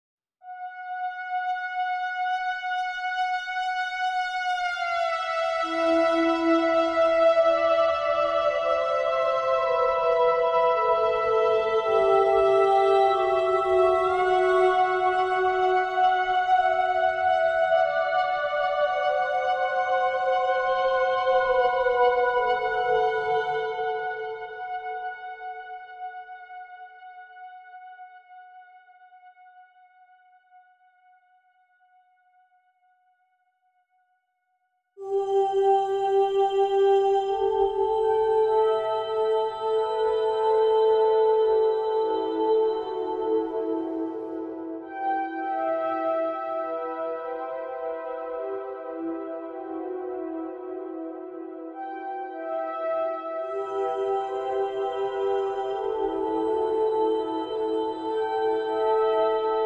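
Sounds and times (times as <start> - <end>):
synthesizer: 0.6 - 29.6, 35.0 - 59.6
soprano singing: 4.4 - 26.3, 35.0 - 59.6.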